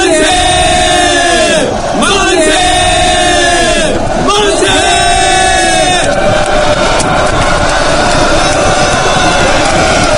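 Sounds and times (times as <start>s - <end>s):
crowd cheering and clapping: 0.0s - 10.1s.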